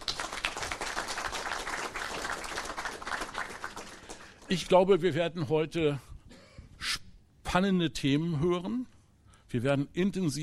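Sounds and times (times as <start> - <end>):
audience applause: 0.0 - 4.5
speech: 4.5 - 6.1, 7.5 - 10.4.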